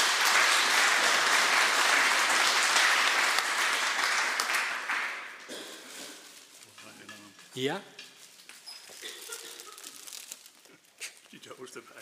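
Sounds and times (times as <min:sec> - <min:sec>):
crowd applauding: 0:00.0 - 0:05.5
speech: 0:07.6 - 0:08.0, 0:11.6 - 0:12.0.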